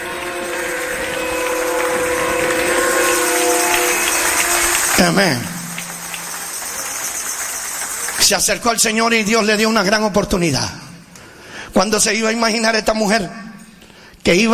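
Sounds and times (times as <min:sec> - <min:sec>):
audience applauding: 0:00.0 - 0:09.9
speech: 0:05.0 - 0:05.6, 0:08.3 - 0:10.8, 0:11.8 - 0:13.5, 0:14.3 - 0:14.5.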